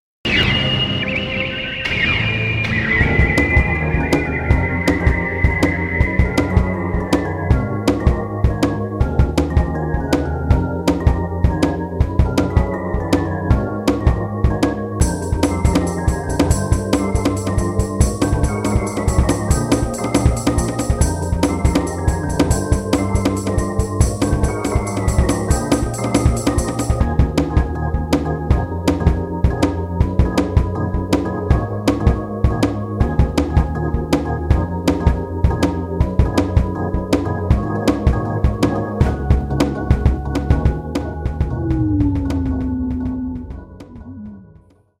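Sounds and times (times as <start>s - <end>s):
music: 0.2s - 44.9s.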